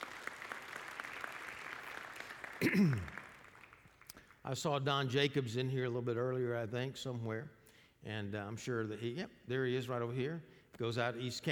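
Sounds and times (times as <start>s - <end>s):
audience clapping: 0.0s - 4.4s
speech: 2.6s - 3.2s, 4.4s - 11.4s.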